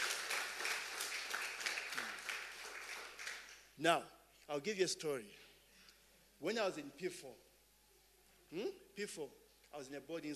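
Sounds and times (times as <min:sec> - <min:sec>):
hand clapping: 0:00.0 - 0:03.7
speech: 0:03.8 - 0:05.4, 0:06.4 - 0:07.5, 0:08.5 - 0:10.3.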